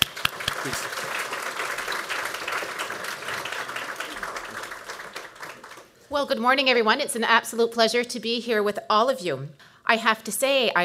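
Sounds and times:
audience applause for the minister: 0.0 - 6.0
speech: 0.6 - 1.1, 6.1 - 10.8.

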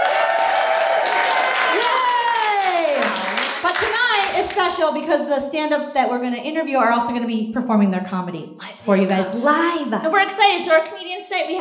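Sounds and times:
audience cheering: 0.0 - 4.7
speech: 3.8 - 11.5.

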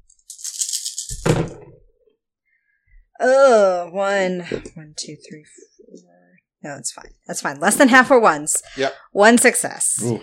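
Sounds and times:
dice rattling in a cupped hand: 0.2 - 1.2
speech: 3.2 - 10.2.

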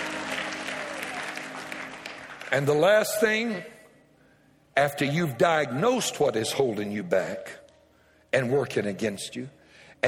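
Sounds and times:
audience clapping hands: 0.0 - 3.6
speech: 2.5 - 3.8, 4.8 - 7.6, 8.3 - 10.0.

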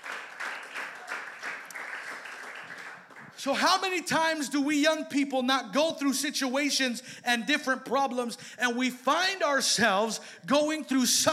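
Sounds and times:
crowd applause: 0.0 - 3.4
speech: 3.4 - 11.3.

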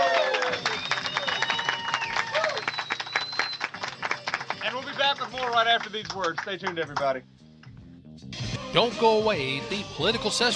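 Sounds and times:
studio audience applause: 0.0 - 7.2
speech: 5.2 - 7.3, 8.7 - 10.5.

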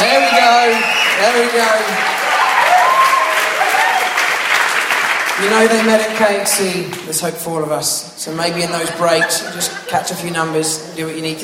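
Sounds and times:
audience applause: 0.0 - 6.8
speech: 5.4 - 11.4
laughter: 8.4 - 11.2.

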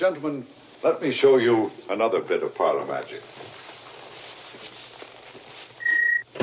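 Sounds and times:
speech: 0.0 - 3.6
brief electronic tone: 5.8 - 6.3.

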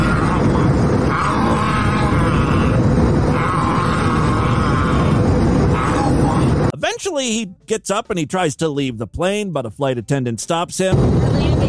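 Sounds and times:
man growling: 0.0 - 6.7
speech: 7.2 - 11.6.

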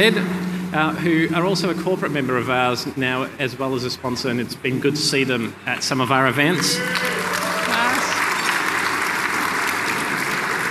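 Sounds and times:
speech: 0.0 - 7.2
event audience applauding a sponsor: 6.4 - 10.6.

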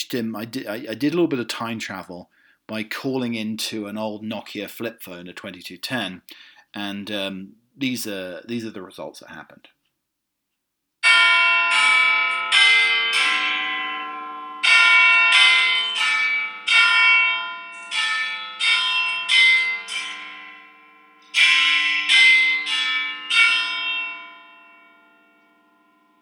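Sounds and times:
speech: 0.0 - 9.8
Big Ben clock tower bell chimes: 11.0 - 26.2.

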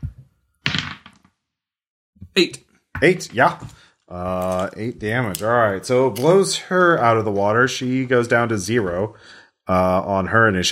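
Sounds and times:
twelve-sided die being rolled: 0.6 - 1.4
speech: 2.4 - 10.7.

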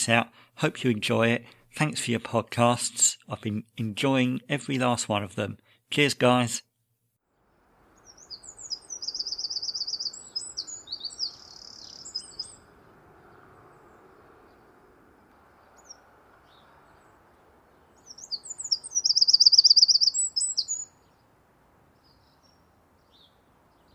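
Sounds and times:
speech: 0.0 - 6.7
bird singing in a cotoneaster bush: 7.9 - 21.2, 22.0 - 23.9.

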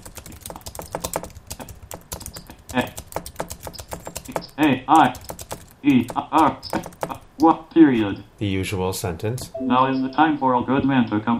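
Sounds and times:
typing a sentence on a computer keyboard: 0.0 - 7.5
speech: 2.7 - 3.0, 4.6 - 5.2, 5.8 - 11.3.

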